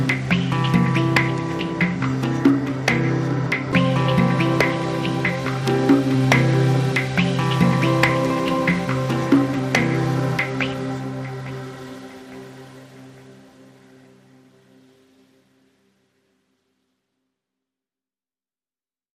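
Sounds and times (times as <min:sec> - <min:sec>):
chill music: 0:00.0 - 0:15.3.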